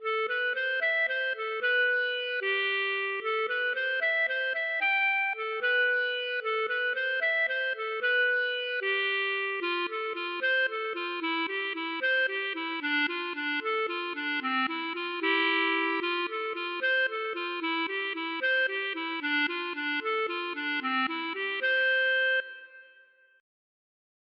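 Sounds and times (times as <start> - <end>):
waltz music: 0.0 - 22.8.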